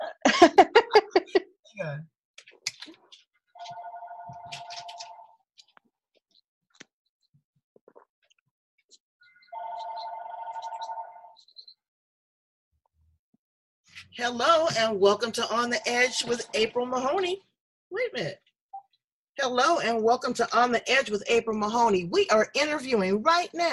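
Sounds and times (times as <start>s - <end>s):
laughter: 0.0s - 1.5s
telephone ringing with incoming call: 3.6s - 5.4s, 9.4s - 11.4s
speech: 14.2s - 18.4s, 19.4s - 23.7s.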